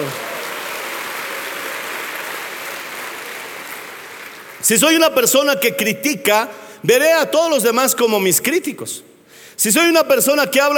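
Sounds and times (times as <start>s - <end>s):
audience applauding: 0.0s - 4.7s
speech: 4.7s - 10.7s.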